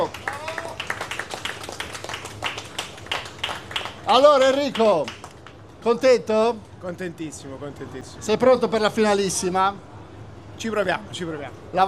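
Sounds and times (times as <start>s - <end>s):
audience applause: 0.0s - 5.5s
speech: 4.1s - 5.2s, 5.8s - 9.9s, 10.6s - 11.8s.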